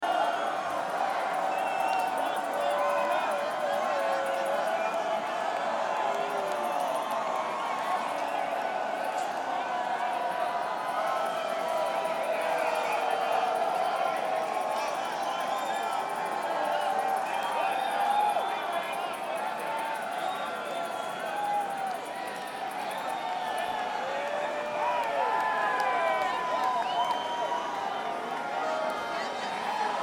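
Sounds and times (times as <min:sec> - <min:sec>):
crowd: 0:00.0 - 0:30.0.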